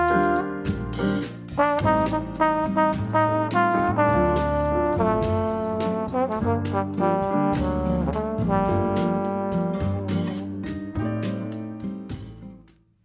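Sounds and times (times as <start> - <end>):
instrumental solo: 0.0 - 11.8.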